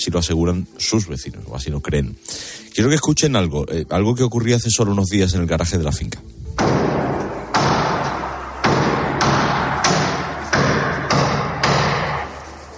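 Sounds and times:
speech: 0:00.0 - 0:06.4
heavy sledgehammer blows against a garage wall: 0:06.6 - 0:12.4.

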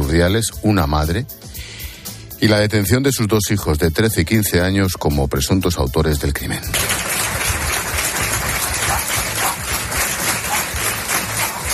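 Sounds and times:
speech: 0:00.1 - 0:01.6, 0:02.4 - 0:07.0
villagers applauding after a minute's silence: 0:06.7 - 0:11.7.

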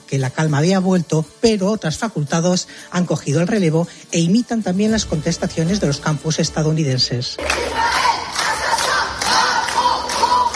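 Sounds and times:
speech: 0:00.1 - 0:08.2
students chanting slogans at a protest: 0:07.4 - 0:10.5.

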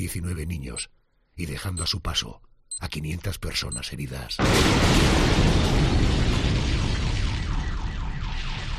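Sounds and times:
speech: 0:00.0 - 0:06.7
bomb explosion: 0:04.4 - 0:08.7.

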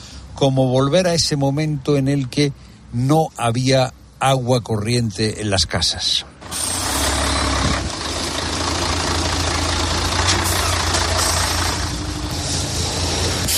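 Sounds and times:
speech: 0:00.4 - 0:06.3
large water tanker truck engine idling: 0:06.4 - 0:13.5.

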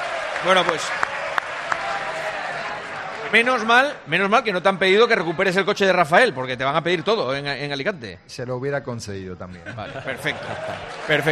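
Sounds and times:
audience applause in a theater: 0:00.0 - 0:04.1, 0:10.0 - 0:11.2
speech: 0:00.4 - 0:01.2, 0:03.3 - 0:11.2
laughter: 0:09.5 - 0:11.2.

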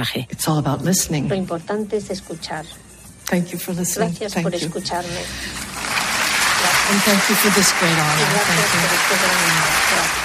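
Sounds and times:
speech: 0:00.0 - 0:05.8, 0:06.9 - 0:10.2
audience applause at awards ceremony: 0:05.4 - 0:10.2.

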